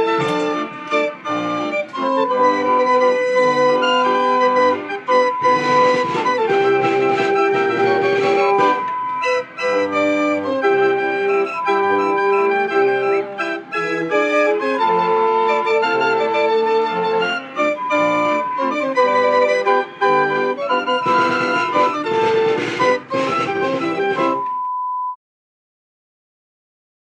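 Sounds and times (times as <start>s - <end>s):
fairground organ: 0.0s - 24.5s.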